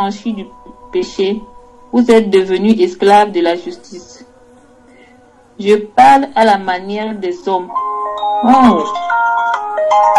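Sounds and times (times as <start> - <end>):
speech: 0.0 - 4.3, 5.6 - 7.8, 8.4 - 9.0
phone ringing with incoming call: 7.7 - 10.1.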